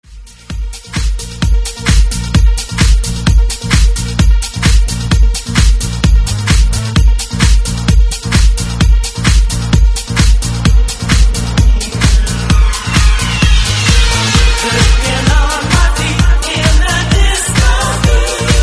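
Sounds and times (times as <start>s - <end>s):
disco music: 0.0s - 18.6s.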